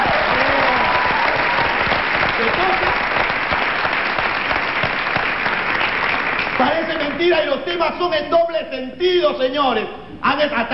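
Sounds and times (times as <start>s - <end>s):
audience applause: 0.0s - 7.5s
speech: 6.6s - 10.7s.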